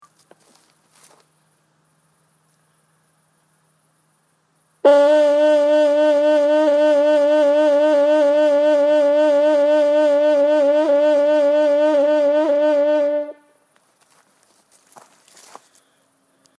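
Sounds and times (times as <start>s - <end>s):
vibrato produced by moving the lower jaw: 4.9s - 13.5s.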